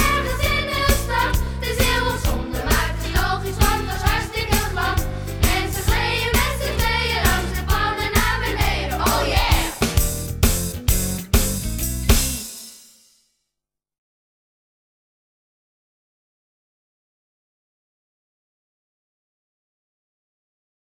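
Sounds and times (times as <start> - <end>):
blues song: 0.0 - 12.6.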